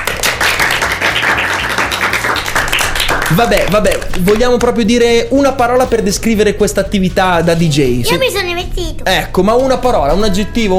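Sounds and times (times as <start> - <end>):
applause: 0.0 - 4.9
speech: 3.3 - 10.7.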